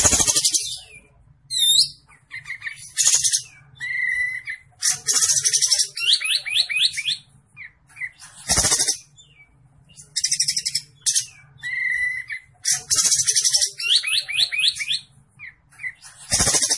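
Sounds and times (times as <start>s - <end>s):
olive-winged bulbul singing: 0.0s - 16.7s.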